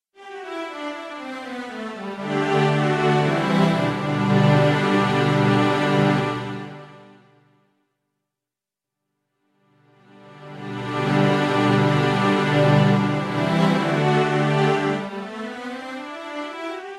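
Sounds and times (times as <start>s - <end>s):
strings: 0.2s - 7.4s, 10.0s - 16.9s.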